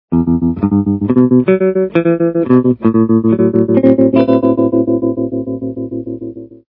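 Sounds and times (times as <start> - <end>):
tremolo playing: 0.1 - 6.6.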